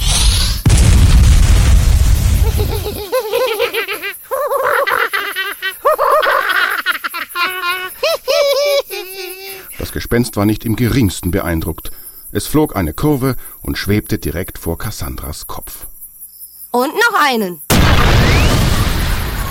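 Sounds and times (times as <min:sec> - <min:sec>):
fireball explosion: 0:00.0 - 0:03.1, 0:17.7 - 0:19.4
high bouncy cackling laughter: 0:02.4 - 0:09.8
speech: 0:10.0 - 0:15.9, 0:16.7 - 0:17.6.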